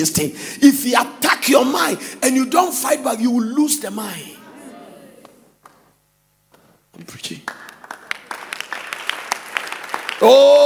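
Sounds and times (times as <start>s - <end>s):
speech: 0.0s - 4.4s, 7.0s - 7.6s, 10.2s - 10.6s
audience clapping: 5.2s - 10.6s.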